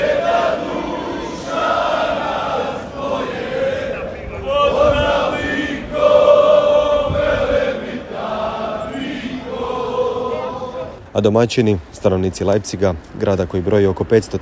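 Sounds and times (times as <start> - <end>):
Croatian football fans singing a supporters' chant in Leipzig: 0.0 - 11.0
speech: 11.2 - 14.4.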